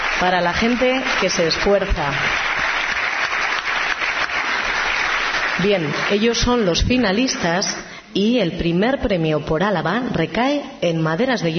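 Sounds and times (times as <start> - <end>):
audience applause at an awards ceremony: 0.0 - 7.6
speech: 0.2 - 2.4, 5.6 - 11.5.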